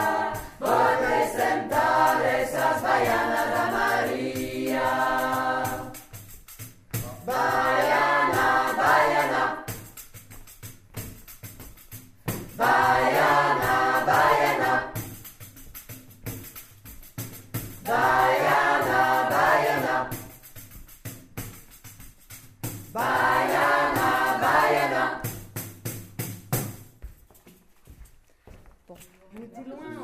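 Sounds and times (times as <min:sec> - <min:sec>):
baiana sung in 3 voices: 0:00.0 - 0:06.2, 0:07.2 - 0:09.8, 0:12.6 - 0:15.0, 0:17.8 - 0:20.4, 0:22.9 - 0:25.4.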